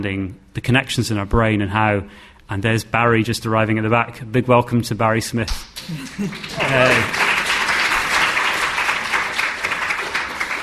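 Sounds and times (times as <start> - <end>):
speech: 0.0 - 7.3
laughter: 5.8 - 8.2
audience applause: 5.8 - 10.6.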